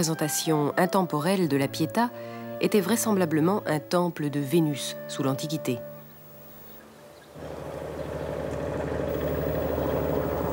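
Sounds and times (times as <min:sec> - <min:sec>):
speech: 0:00.0 - 0:05.9
fishing boat engine returning to port of Loctudie: 0:07.4 - 0:10.5.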